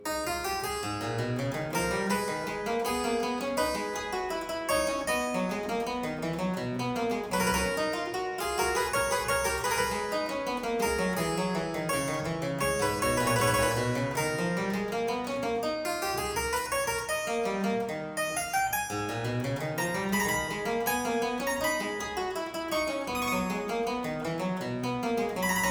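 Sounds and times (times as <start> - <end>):
harpsichord playing a courante in A minor: 0.0 - 25.7.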